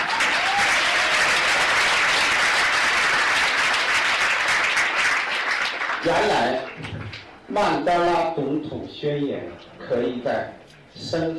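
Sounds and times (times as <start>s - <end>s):
warm audience applause: 0.0s - 7.3s
speech: 6.0s - 11.3s.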